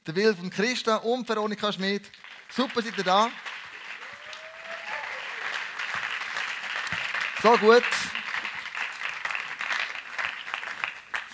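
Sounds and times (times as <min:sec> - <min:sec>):
speech: 0:00.0 - 0:03.6, 0:07.4 - 0:08.1
audience applause: 0:02.1 - 0:11.3.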